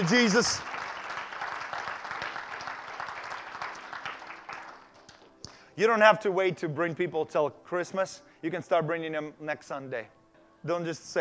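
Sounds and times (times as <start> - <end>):
speech: 0.0 - 0.7, 5.8 - 11.1
audience clapping hands: 0.0 - 5.3.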